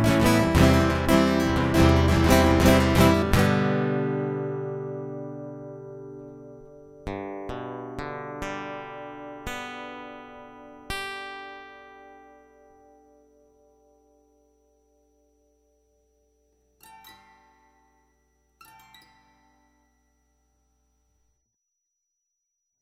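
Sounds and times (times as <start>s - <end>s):
guitar loop: 0.0s - 14.3s, 16.8s - 19.9s.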